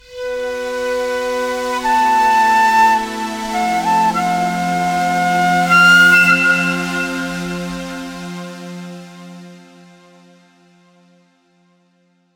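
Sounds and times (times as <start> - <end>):
Japanese-style jingle: 1.1 - 9.1.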